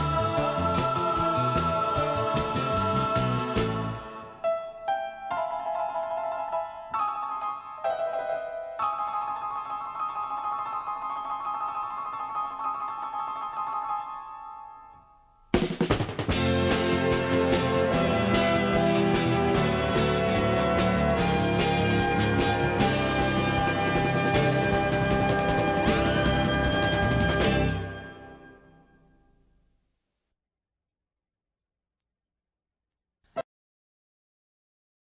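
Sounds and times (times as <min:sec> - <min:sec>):
heavenly instrumental music: 0:00.0 - 0:15.2, 0:16.3 - 0:29.0.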